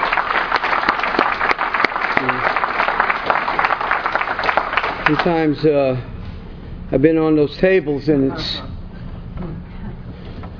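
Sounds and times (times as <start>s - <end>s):
audience applause: 0.0s - 5.5s
speech: 5.1s - 6.1s, 6.9s - 8.7s.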